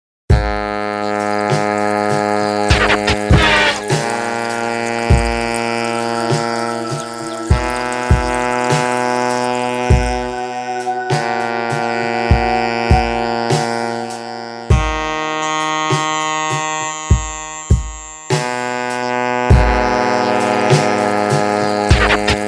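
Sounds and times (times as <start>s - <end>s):
saxophone in the fog: 0.3s - 22.4s.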